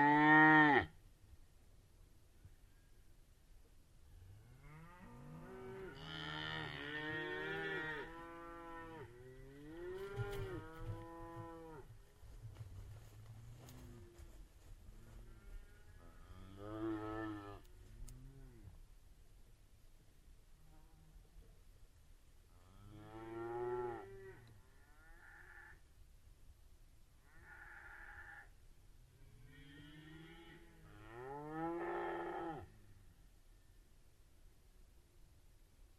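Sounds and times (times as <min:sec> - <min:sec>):
cattle: 0:04.5 - 0:18.8, 0:22.5 - 0:25.8, 0:27.2 - 0:33.2.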